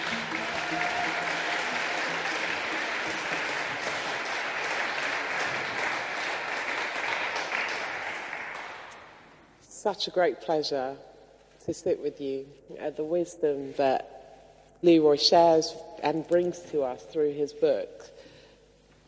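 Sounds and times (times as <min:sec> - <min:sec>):
audience applause welcoming two speakers on stage: 0:00.0 - 0:09.1
speech: 0:09.8 - 0:11.1, 0:11.7 - 0:14.2, 0:14.8 - 0:18.2.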